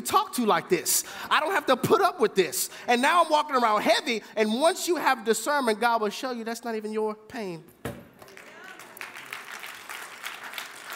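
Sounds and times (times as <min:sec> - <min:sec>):
speech: 0:00.0 - 0:07.8
audience clapping: 0:08.1 - 0:10.9.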